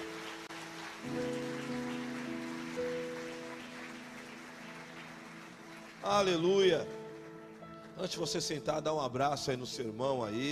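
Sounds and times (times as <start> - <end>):
many hands clapping: 0.0 - 8.2
speech: 6.0 - 7.0, 8.0 - 10.5.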